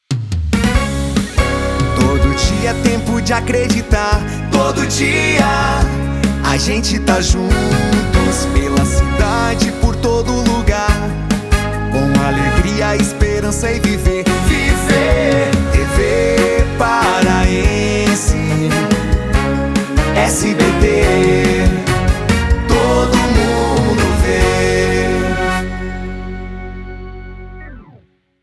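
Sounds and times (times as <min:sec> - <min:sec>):
jingle: 0:00.6 - 0:27.6.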